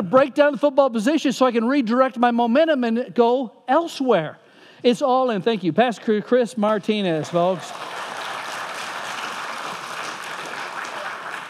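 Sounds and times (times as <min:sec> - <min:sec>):
speech: 0:00.0 - 0:08.1
audience applause: 0:07.0 - 0:11.4.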